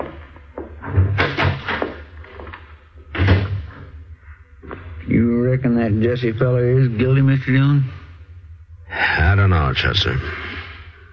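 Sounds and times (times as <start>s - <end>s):
door opening and closing: 0.8s - 4.0s
speech: 5.2s - 8.0s, 9.0s - 10.4s.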